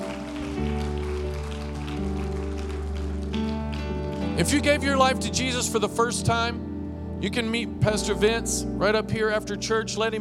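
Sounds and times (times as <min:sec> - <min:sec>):
audience clapping hands in praise: 0:00.0 - 0:04.8
speech: 0:04.4 - 0:10.1.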